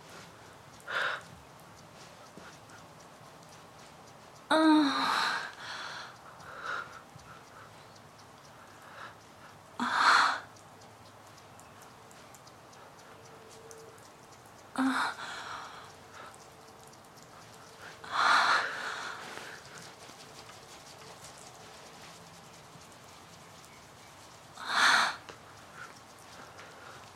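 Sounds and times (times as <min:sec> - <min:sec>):
quiet steady hiss: 0:00.0 - 0:27.1
deep breaths: 0:00.7 - 0:01.4, 0:04.6 - 0:07.7, 0:14.8 - 0:16.4, 0:17.8 - 0:20.0, 0:24.6 - 0:27.1.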